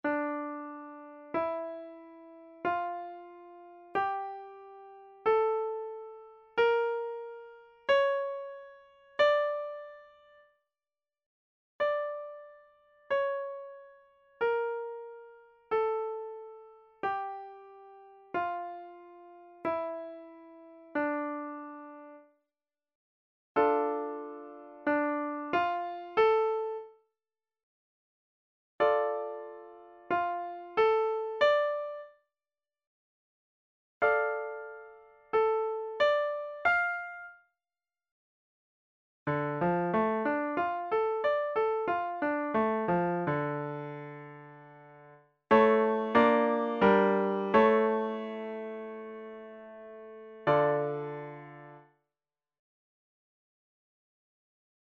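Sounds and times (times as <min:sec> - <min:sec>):
piano exercise on D harmonic minor scale: 0:00.0 - 0:10.4, 0:11.8 - 0:22.2, 0:23.6 - 0:26.9, 0:28.8 - 0:32.1, 0:34.0 - 0:37.3, 0:39.3 - 0:51.9.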